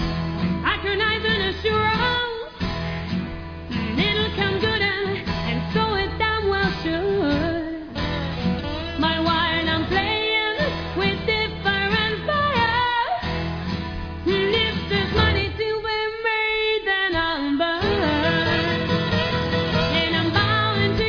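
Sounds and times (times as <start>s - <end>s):
acoustic music: 0.0s - 21.0s.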